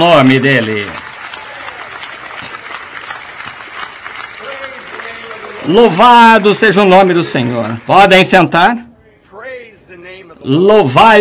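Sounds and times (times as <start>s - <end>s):
speech: 0.0s - 1.0s, 5.6s - 8.9s, 10.4s - 11.2s
audience clapping: 0.0s - 8.8s.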